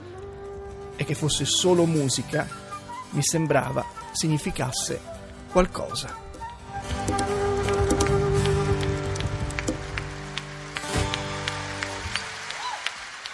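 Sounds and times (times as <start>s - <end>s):
speech: 1.0s - 6.2s
concert audience applause at the Teatro San Carlo in Naples: 7.3s - 13.3s.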